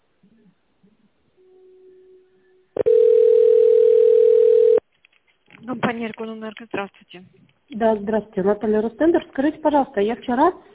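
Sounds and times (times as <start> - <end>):
telephone tone while waiting for connection: 1.4 - 4.8
speech: 5.7 - 10.7.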